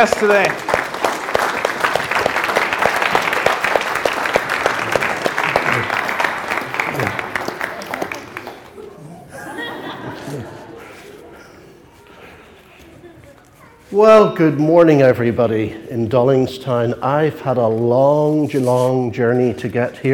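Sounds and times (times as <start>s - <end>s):
speech: 0.0s - 0.8s, 14.0s - 20.1s
audience applause welcoming a guest: 0.0s - 10.3s
laughter: 1.9s - 13.3s.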